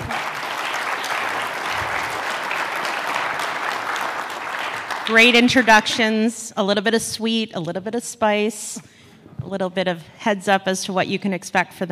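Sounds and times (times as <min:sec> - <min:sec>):
audience applause: 0:00.0 - 0:05.8
speech: 0:05.1 - 0:11.8.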